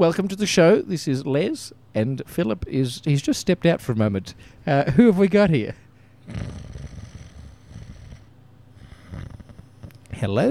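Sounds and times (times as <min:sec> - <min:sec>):
speech: 0:00.0 - 0:06.6, 0:10.2 - 0:10.5
comic snoring noise: 0:06.2 - 0:10.2.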